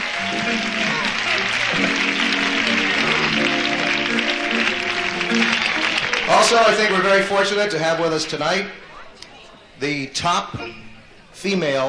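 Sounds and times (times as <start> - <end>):
audience applause: 0.0 - 7.9
speech: 6.3 - 8.9, 9.8 - 10.8, 11.4 - 11.8.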